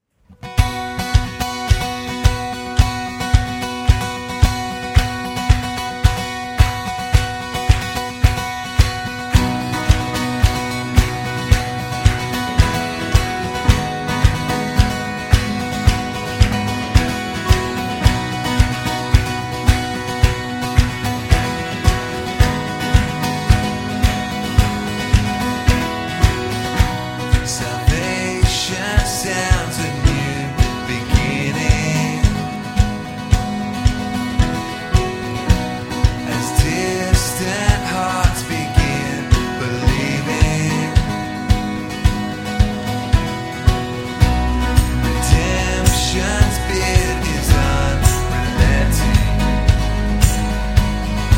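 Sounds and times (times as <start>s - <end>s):
acoustic music: 0.3s - 51.3s.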